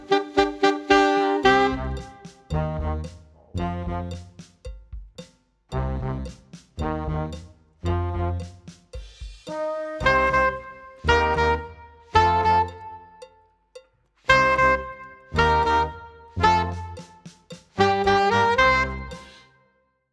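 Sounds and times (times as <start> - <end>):
loud heavy metal alto saxophone: 0.0 - 4.4, 5.8 - 8.7, 9.5 - 13.2, 14.3 - 17.2, 17.8 - 19.6.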